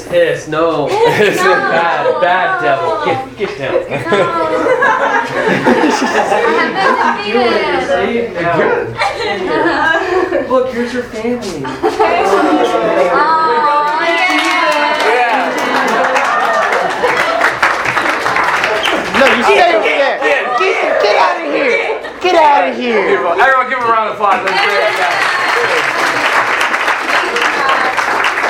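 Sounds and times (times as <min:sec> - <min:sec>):
speech: 0:00.1 - 0:14.2, 0:19.2 - 0:26.1
laughter: 0:00.8 - 0:10.8, 0:11.5 - 0:23.6, 0:24.3 - 0:28.2
audience applause: 0:13.3 - 0:20.1, 0:24.3 - 0:28.4.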